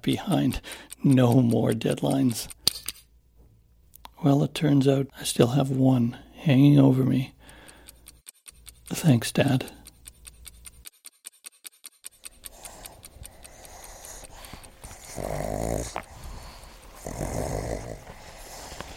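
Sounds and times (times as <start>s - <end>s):
speech: 0.0s - 2.9s, 4.2s - 7.4s, 8.9s - 9.8s
playing pugs snorting, snuffling and grunting: 12.3s - 18.9s.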